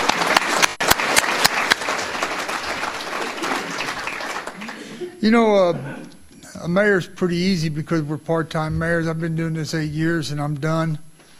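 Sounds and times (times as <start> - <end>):
crowd applauding: 0.0 - 5.1
speech: 5.2 - 11.1.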